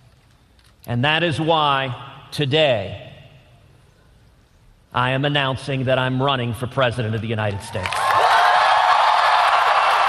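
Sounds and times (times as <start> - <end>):
speech: 0.8 - 3.0, 5.0 - 8.0
audience clapping in a played video: 7.8 - 10.0.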